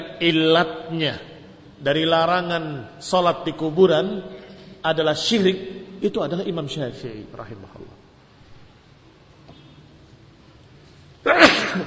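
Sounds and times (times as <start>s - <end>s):
speech: 0.2s - 8.0s
person sneezing: 11.2s - 11.8s.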